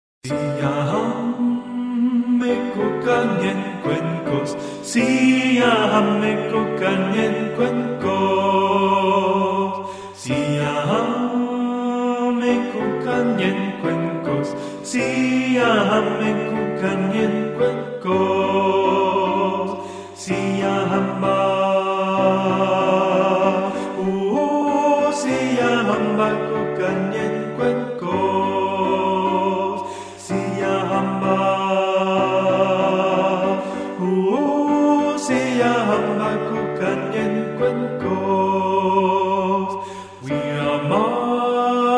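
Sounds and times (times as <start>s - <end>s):
soprano singing: 0.2s - 41.9s.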